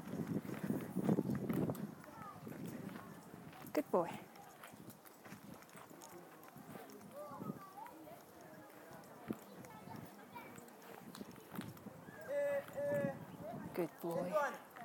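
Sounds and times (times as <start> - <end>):
horse hooves clip-clopping at a jog: 0.0 - 14.8
speech: 3.8 - 4.3, 14.0 - 14.7.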